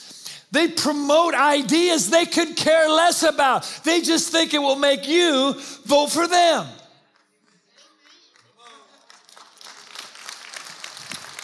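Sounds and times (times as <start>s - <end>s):
speech: 0.5s - 6.8s
audience clapping: 7.0s - 11.4s.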